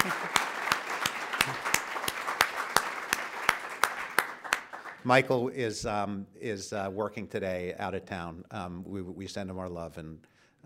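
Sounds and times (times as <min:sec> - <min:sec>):
audience applause: 0:00.0 - 0:05.1
speech: 0:05.0 - 0:10.6.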